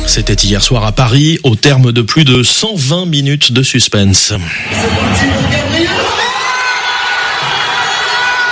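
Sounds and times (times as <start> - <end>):
speech: 0.2 - 5.6
PSG football supporters cheering at the Parc des Princes: 5.9 - 8.5.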